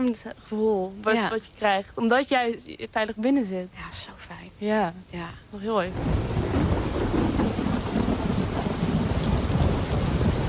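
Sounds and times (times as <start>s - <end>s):
speech: 0.0s - 6.4s
steady heavy rain in a thunderstorm: 0.0s - 10.4s
low thunder rumbling and crackling: 5.9s - 10.4s.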